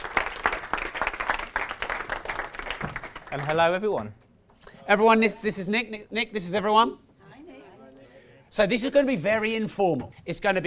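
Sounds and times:
audience applauding: 0.0 - 4.1
speech: 3.3 - 4.2, 4.9 - 7.0, 8.5 - 10.6.

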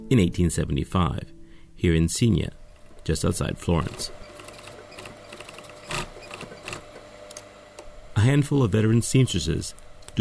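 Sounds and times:
speech: 0.0 - 4.2, 8.2 - 10.2
antique foot-pedal sewing machines clattering in the Grevi family hat workshop: 3.8 - 6.8.

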